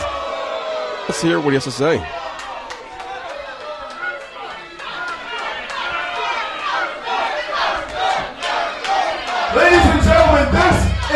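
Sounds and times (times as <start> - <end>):
wrestling crowd cheering and shouting: 0.0 - 11.1
speech: 1.1 - 2.2.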